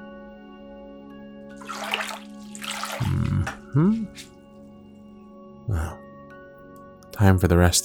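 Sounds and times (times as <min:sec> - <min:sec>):
water splashing and running while a person is washed: 0:01.5 - 0:04.3
speech: 0:03.0 - 0:04.3, 0:07.2 - 0:07.8.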